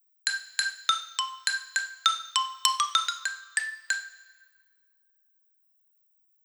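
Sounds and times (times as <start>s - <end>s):
xylophone: 0.3s - 4.4s.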